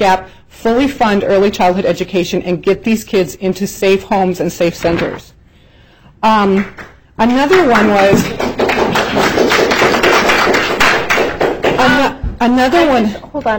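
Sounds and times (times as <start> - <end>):
speech: 0.0 - 5.3, 6.2 - 8.5, 12.4 - 13.5
audience clapping: 6.5 - 12.1.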